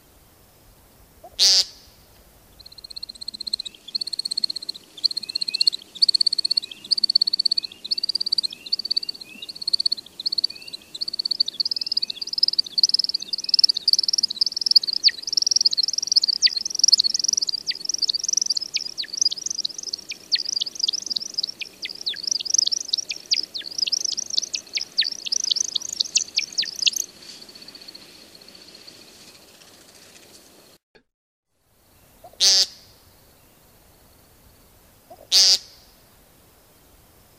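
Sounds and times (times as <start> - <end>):
American Woodcock peent call: 1.2 - 1.9, 2.6 - 28.0, 32.2 - 32.9, 35.1 - 35.8.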